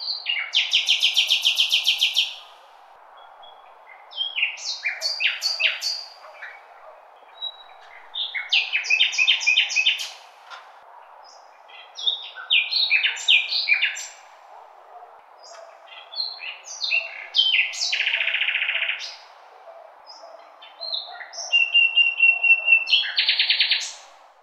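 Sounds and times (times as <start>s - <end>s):
birdsong chirps and trills: 0.0s - 10.4s, 11.0s - 14.4s, 15.4s - 24.2s.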